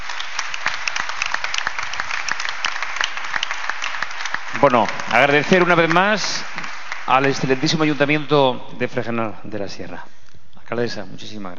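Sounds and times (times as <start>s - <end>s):
audience applause: 0.0s - 8.4s
speech: 4.6s - 6.5s, 7.1s - 11.5s.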